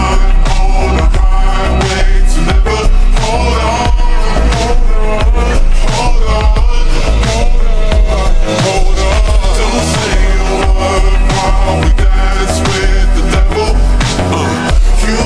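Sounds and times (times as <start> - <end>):
bass sound: 0.0 - 15.2.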